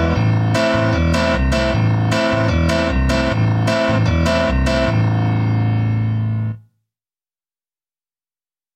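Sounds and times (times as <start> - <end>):
low-fi acoustic music: 0.0 - 6.6.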